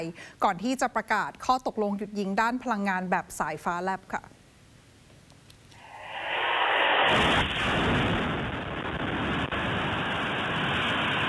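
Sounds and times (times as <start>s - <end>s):
speech: 0.0s - 4.4s
air strike explosions in Kharkiv: 5.8s - 11.2s.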